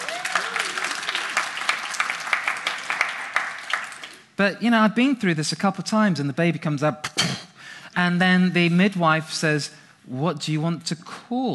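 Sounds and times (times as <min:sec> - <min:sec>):
audience applause: 0:00.0 - 0:04.2
speech: 0:04.4 - 0:11.5.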